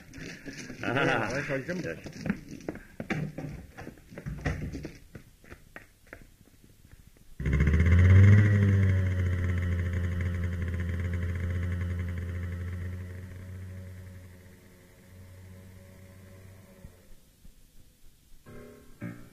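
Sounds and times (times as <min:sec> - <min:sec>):
speech: 0:00.4 - 0:02.4
motorcycle riding away: 0:07.4 - 0:17.1.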